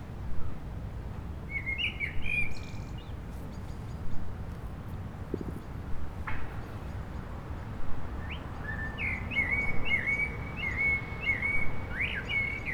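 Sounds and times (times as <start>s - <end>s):
low traffic rumble: 0.1s - 12.7s
common blackbird singing: 8.2s - 12.7s.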